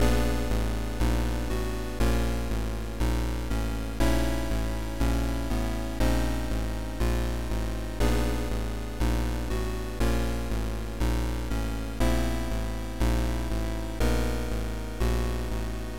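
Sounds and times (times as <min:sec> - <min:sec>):
background music loop: 0:00.0 - 0:15.9.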